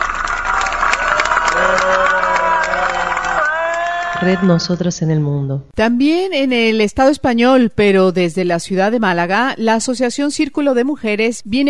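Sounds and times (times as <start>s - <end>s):
crowd shouting: 0.0s - 4.7s
speech: 1.7s - 2.2s, 4.2s - 11.6s.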